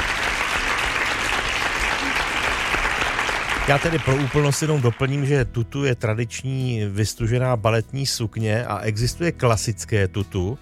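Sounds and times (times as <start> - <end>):
audience applause: 0.0 - 5.4
speech: 3.7 - 10.6.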